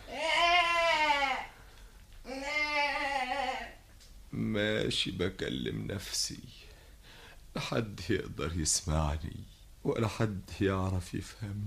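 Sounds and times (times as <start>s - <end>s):
young goat kid bleating: 0.0s - 1.6s, 2.2s - 3.8s
speech: 4.3s - 6.7s, 7.6s - 11.6s.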